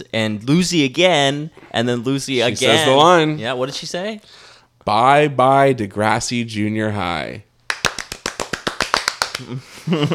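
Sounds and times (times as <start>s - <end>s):
speech: 0.0s - 7.5s, 9.4s - 10.1s
hand clapping: 7.7s - 9.6s.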